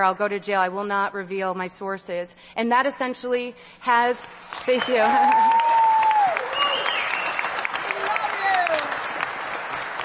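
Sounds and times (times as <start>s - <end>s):
speech: 0.0s - 5.8s
crowd applauding: 4.4s - 10.0s
faint voices and whistles: 6.4s - 7.5s.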